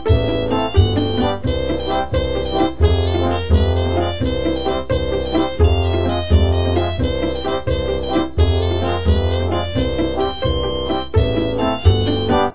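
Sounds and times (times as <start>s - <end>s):
happy dance music: 0.0s - 12.5s.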